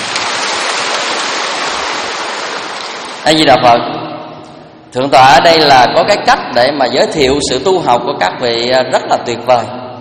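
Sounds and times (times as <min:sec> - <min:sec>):
audience applause: 0:00.0 - 0:03.2
speech: 0:03.2 - 0:04.0, 0:04.9 - 0:09.8.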